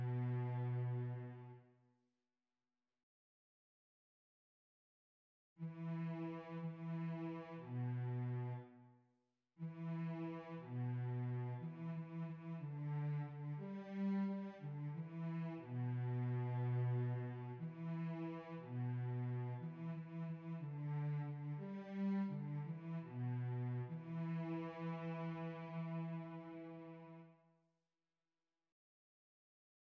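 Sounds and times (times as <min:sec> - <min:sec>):
cello: 0:00.0 - 0:01.7, 0:05.6 - 0:08.8, 0:09.6 - 0:27.4.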